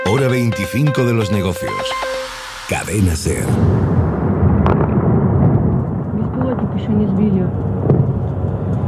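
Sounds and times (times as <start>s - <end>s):
speech: 0.1s - 4.0s
missile explosions: 2.7s - 8.8s.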